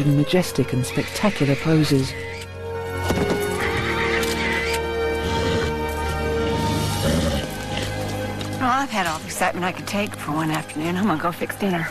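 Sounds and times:
speech: 0:00.0 - 0:02.4, 0:08.8 - 0:11.8
horse hooves clopping and thudding: 0:00.0 - 0:11.8
horse rearing with a rider and whinnying: 0:00.7 - 0:08.3.

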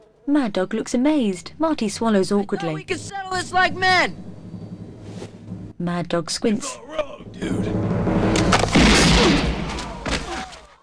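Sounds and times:
speech: 0:00.2 - 0:04.3, 0:05.8 - 0:08.1
gunshot: 0:08.2 - 0:10.5.

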